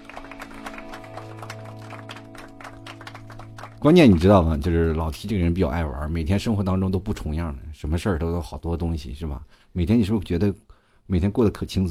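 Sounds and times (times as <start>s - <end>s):
hand clapping: 0.0s - 5.0s
speech: 3.8s - 11.8s.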